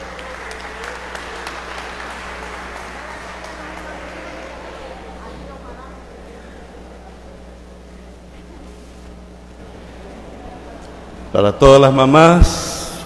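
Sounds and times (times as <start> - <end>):
applause: 0.0 - 5.2
speech: 11.3 - 12.7.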